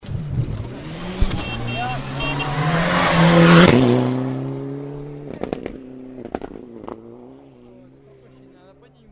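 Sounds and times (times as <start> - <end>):
horn honking: 1.0 - 4.0.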